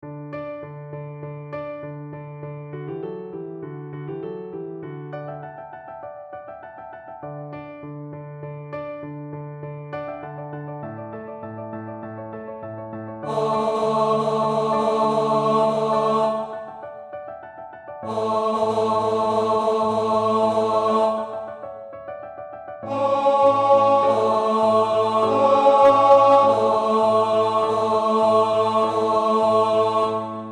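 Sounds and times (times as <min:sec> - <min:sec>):
tenor singing: 0:13.2 - 0:17.0, 0:18.0 - 0:21.6, 0:22.8 - 0:30.5.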